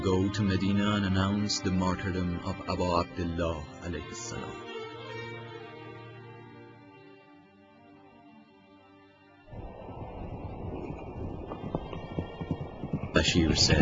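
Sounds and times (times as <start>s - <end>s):
speech: 0.0s - 4.8s, 13.3s - 13.8s
horse hooves galloping: 9.5s - 13.8s
rough windy rush: 9.5s - 13.8s
sustained droning tone: 9.5s - 13.8s.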